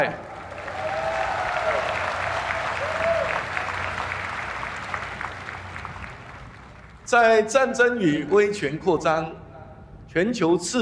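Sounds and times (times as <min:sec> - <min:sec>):
speech: 0:00.0 - 0:00.2, 0:07.1 - 0:09.4, 0:10.1 - 0:10.8
audience applause: 0:00.0 - 0:07.1.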